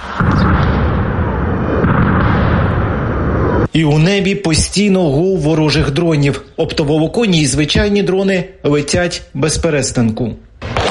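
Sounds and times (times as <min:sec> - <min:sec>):
Russian guided aerial bombs exploding: 0:00.0 - 0:03.7, 0:10.6 - 0:10.8
speech: 0:03.7 - 0:10.5.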